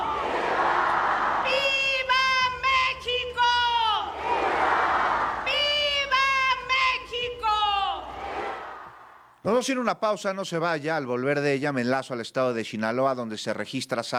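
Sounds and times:
crowd roaring back at independence ceremony: 0.0s - 9.4s
loud amplified voice shouting drawn-out cries at independence ceremony: 1.3s - 4.3s, 5.4s - 8.2s
speech: 9.6s - 14.1s.

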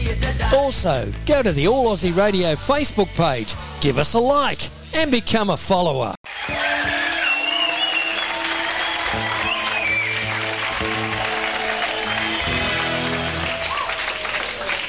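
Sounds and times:
speech: 0.5s - 6.6s
clapping and applause: 6.2s - 14.8s.

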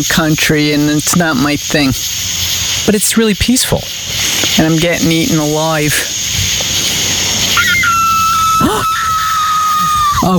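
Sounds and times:
speech: 0.0s - 6.5s
coyote or fox call: 7.3s - 10.3s.

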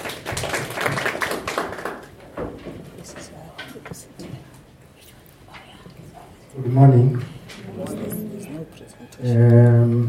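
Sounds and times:
applause: 0.0s - 2.3s
speech: 6.8s - 7.3s, 9.2s - 9.5s.

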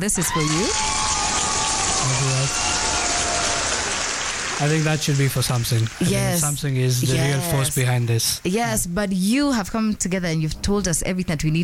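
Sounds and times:
speech: 0.0s - 1.0s, 2.0s - 2.8s, 4.6s - 11.6s
hands clapping: 0.4s - 6.6s.

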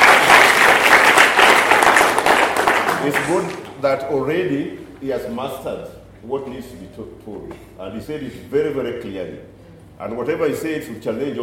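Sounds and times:
audience applause for two speakers: 0.0s - 3.7s
speech: 3.0s - 11.4s.

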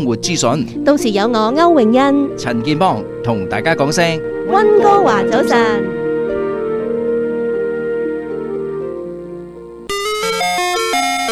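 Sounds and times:
speech: 0.0s - 6.0s
ice cream truck electronic jingle: 0.0s - 11.3s.

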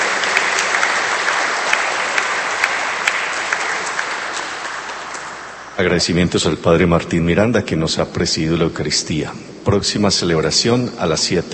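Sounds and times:
applause: 0.0s - 5.8s
speech: 5.8s - 11.5s.

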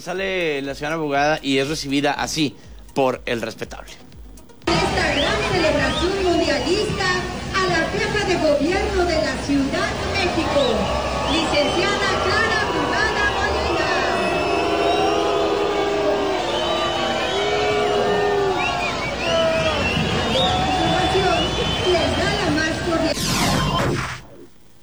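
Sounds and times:
speech: 0.0s - 4.1s
crowd booing: 4.7s - 24.4s.

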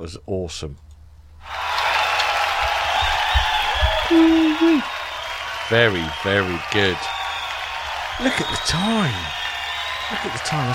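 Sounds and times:
speech: 0.0s - 1.6s, 4.1s - 5.0s, 5.7s - 7.2s, 8.2s - 9.4s, 10.1s - 10.7s
recorded round of applause: 1.4s - 10.7s.

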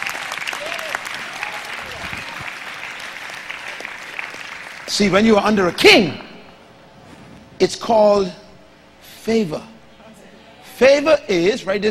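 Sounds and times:
audience clapping hands: 0.0s - 5.4s
speech: 4.9s - 6.3s, 7.6s - 8.4s, 9.2s - 9.7s, 10.8s - 11.8s.

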